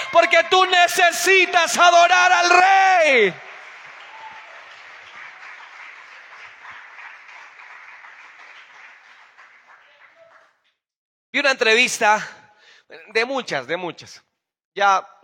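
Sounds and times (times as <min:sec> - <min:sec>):
speech: 0:00.1 - 0:03.5, 0:11.4 - 0:15.2
audience applause: 0:02.2 - 0:10.6.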